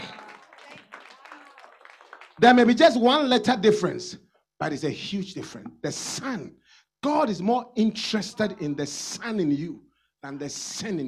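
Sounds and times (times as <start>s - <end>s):
audience applause: 0.0s - 2.7s
speech: 2.4s - 11.0s.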